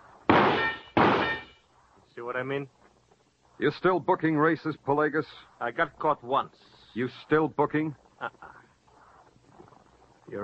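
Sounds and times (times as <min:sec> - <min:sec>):
gunshots: 0:00.3 - 0:01.6
metal duck target clanging from gunshot hits: 0:00.3 - 0:01.6
speech: 0:02.2 - 0:02.8, 0:03.6 - 0:08.6, 0:10.3 - 0:10.4.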